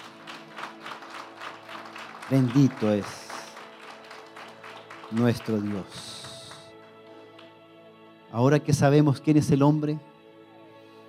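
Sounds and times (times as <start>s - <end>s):
audience applause: 0.0s - 6.8s
speech: 2.3s - 3.2s, 5.1s - 6.2s, 8.3s - 10.1s.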